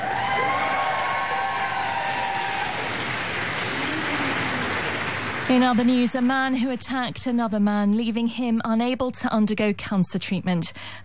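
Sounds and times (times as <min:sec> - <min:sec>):
Foreign Office staff cheering and clapping: 0:00.0 - 0:06.5
speech: 0:05.5 - 0:11.0.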